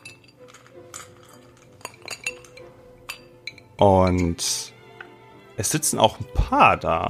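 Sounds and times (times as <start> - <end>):
drinks being poured: 0.0 - 5.2
glasses clinking: 0.0 - 5.2
speech: 3.8 - 4.7, 5.6 - 7.0.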